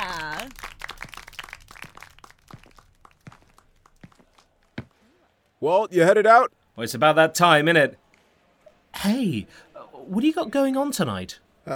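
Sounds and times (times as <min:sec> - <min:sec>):
people clapping: 0:00.0 - 0:05.0
speech: 0:05.6 - 0:08.0, 0:09.0 - 0:11.7.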